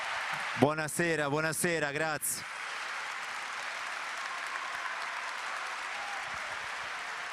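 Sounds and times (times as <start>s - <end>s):
audience applause: 0.0s - 7.3s
speech: 0.3s - 2.6s.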